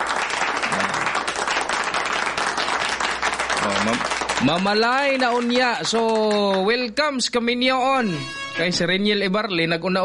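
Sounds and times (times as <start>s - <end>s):
people clapping in congratulation: 0.0s - 6.9s
speech: 3.6s - 10.0s.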